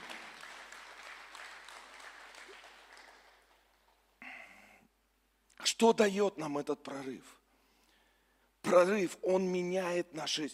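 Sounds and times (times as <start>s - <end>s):
audience applause: 0.0s - 4.0s
speech: 5.8s - 7.4s, 8.6s - 10.5s.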